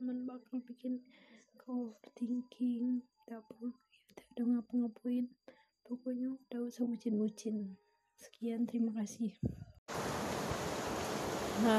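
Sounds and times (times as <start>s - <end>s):
speech: 0.4s - 3.8s, 4.4s - 5.4s, 6.0s - 10.7s, 11.6s - 11.7s
light drizzling rain: 9.9s - 11.7s.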